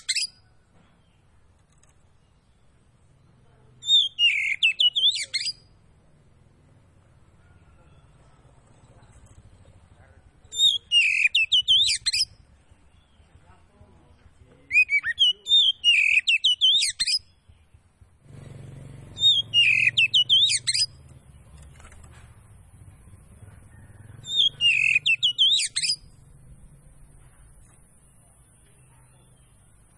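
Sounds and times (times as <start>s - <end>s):
magpie-robin singing: 0.0s - 0.4s, 3.7s - 5.8s, 7.9s - 13.5s, 14.6s - 17.9s, 19.1s - 21.9s, 23.0s - 27.2s.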